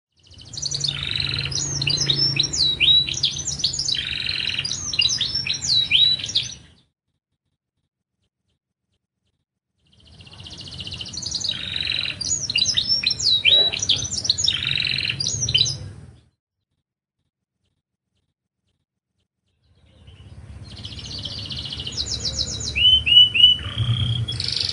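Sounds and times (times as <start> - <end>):
Lancashire canary singing: 0.2 - 6.9, 9.8 - 16.4, 19.5 - 24.7.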